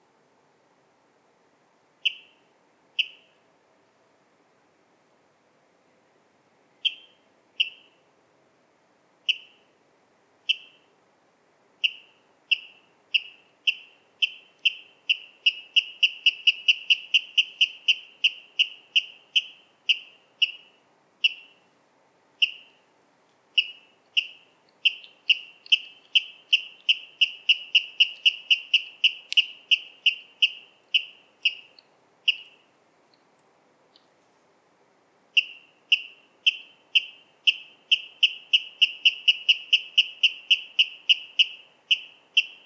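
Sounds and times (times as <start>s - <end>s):
water rail sharp kip calls: 11.8s - 21.6s, 22.4s - 22.8s, 23.6s - 33.2s, 35.4s - 42.6s.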